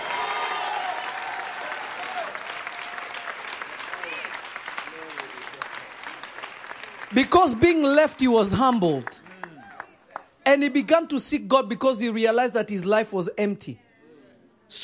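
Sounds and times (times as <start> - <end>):
audience clapping: 0.0 - 10.4
speech: 7.1 - 9.2, 10.5 - 13.8.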